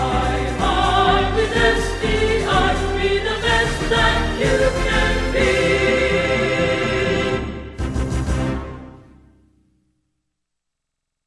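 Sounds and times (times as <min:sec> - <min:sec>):
alma mater hymn: 0:00.0 - 0:08.0.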